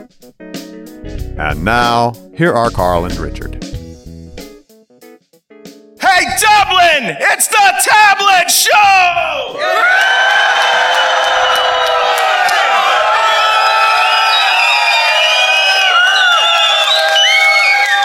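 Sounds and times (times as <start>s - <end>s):
speech: 0.1s - 0.5s, 1.1s - 3.6s, 7.0s - 11.6s
audience cheering and whooping: 9.4s - 18.0s.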